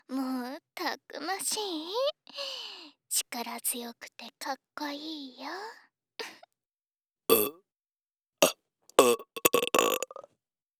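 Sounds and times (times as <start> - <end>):
speech: 0.8 - 5.8
burp: 7.3 - 7.6, 8.4 - 10.3.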